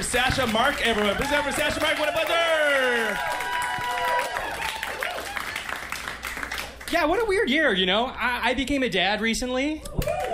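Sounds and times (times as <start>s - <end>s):
audience applause: 0.0s - 7.0s, 10.0s - 10.3s
speech: 0.1s - 3.5s, 6.9s - 10.2s.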